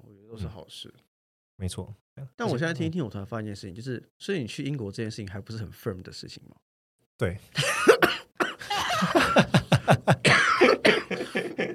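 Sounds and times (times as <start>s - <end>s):
speech: 0.3s - 8.2s, 9.0s - 10.5s
laughter: 7.6s - 8.0s, 8.6s - 11.7s
sudden coughing fit: 7.6s - 9.3s, 10.2s - 11.7s.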